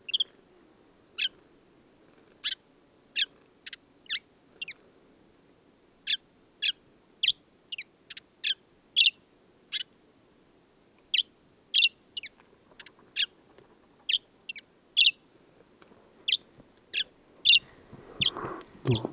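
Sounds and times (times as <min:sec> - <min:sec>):
desert sparrow chirping: 0:03.2 - 0:04.8, 0:06.1 - 0:09.9, 0:11.1 - 0:13.4, 0:14.0 - 0:15.2, 0:16.2 - 0:19.1.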